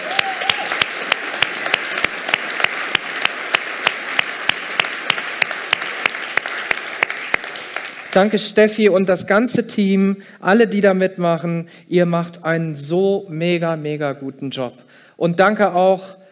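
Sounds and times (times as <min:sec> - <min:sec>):
audience applause: 0:00.0 - 0:08.4
speech: 0:08.2 - 0:16.2.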